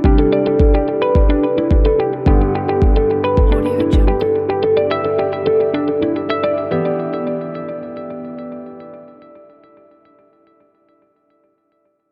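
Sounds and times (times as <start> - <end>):
corporate electronic music: 0.0 - 7.6.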